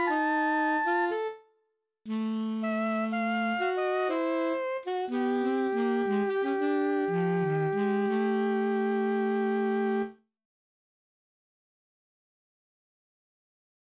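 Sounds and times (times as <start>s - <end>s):
saxophone miniature piece: 0.0s - 1.4s, 2.1s - 10.2s.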